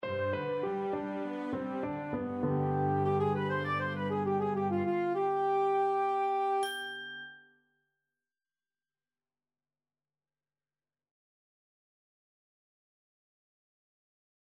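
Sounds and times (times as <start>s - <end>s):
oriental music: 0.0s - 6.7s.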